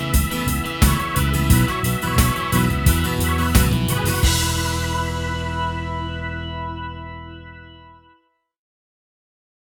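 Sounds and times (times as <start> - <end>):
rock mix: 0.0 - 7.8.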